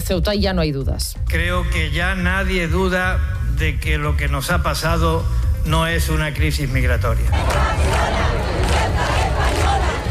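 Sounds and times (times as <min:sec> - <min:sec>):
speech: 0:00.1 - 0:09.0
large protest crowd shouting against the government: 0:07.4 - 0:10.0.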